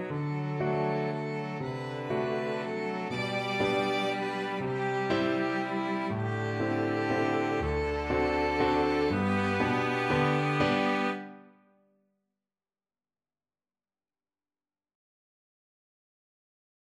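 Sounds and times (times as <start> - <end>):
waltz arrangement in D major for violin, cello and piano: 0.0 - 11.4.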